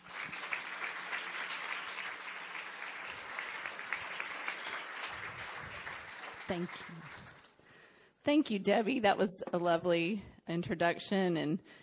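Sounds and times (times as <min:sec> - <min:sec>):
crowd applause welcoming guest: 0:00.0 - 0:07.6
speech: 0:06.5 - 0:07.4, 0:08.2 - 0:11.8.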